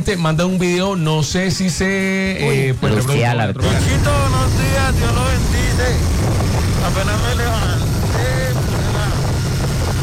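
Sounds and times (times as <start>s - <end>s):
speech: 0.0s - 8.2s
motorcycle engine rumble: 3.6s - 10.0s
wind buffeting on motorcycle rider's helmet with visor down: 3.6s - 10.0s.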